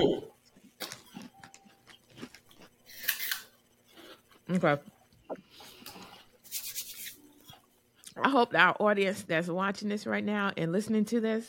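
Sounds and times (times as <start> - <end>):
crunchy snack being chewed: 0.5 - 4.4
speech: 4.5 - 5.0, 8.2 - 11.4.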